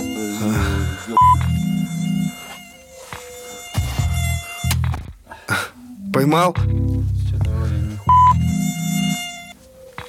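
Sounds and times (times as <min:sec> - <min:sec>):
mosquito buzzing in a room: 0:00.0 - 0:05.2, 0:07.4 - 0:10.0
speech: 0:00.4 - 0:01.3, 0:06.2 - 0:07.1.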